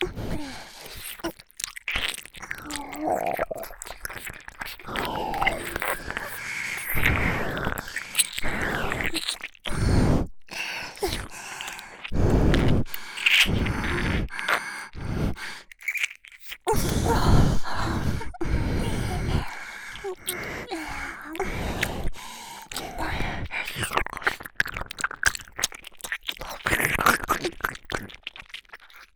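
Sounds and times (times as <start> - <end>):
ear licking: 0.0 - 29.1
double nose breathing: 4.0 - 15.9, 16.6 - 24.4.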